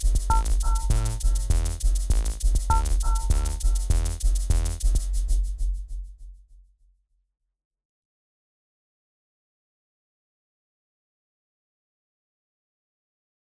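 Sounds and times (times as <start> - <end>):
rhythm patterns: 0.0 - 5.9.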